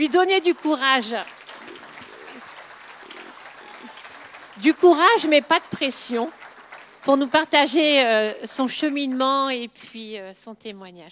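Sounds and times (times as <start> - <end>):
speech: 0.0 - 1.4, 4.6 - 6.4, 7.0 - 11.1
audience clapping to welcome a speaker: 0.0 - 8.6.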